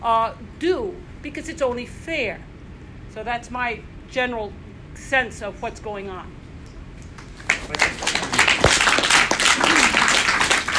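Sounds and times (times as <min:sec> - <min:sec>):
speech: 0:00.0 - 0:02.5, 0:03.1 - 0:06.4
crowd applauding: 0:07.4 - 0:10.7.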